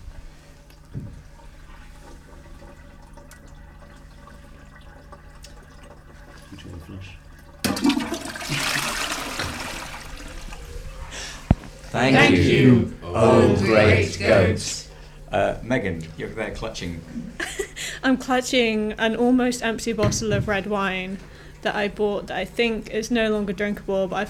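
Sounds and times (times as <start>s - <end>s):
room hum: 0.0s - 24.2s
toilet flushing: 0.4s - 11.6s
speech: 11.9s - 17.4s, 18.0s - 24.2s.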